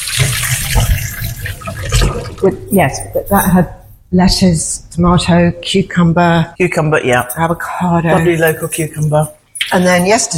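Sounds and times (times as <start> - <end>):
tap water running while hands are washed: 0.0 - 4.2
speech: 2.4 - 10.3.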